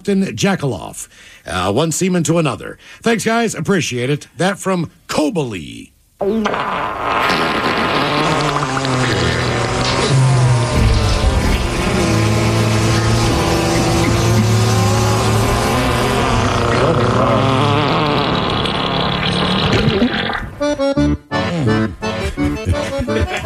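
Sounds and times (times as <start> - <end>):
speech: 0.0 - 9.1
fart sound effects: 6.2 - 20.7
laughter: 21.4 - 23.4.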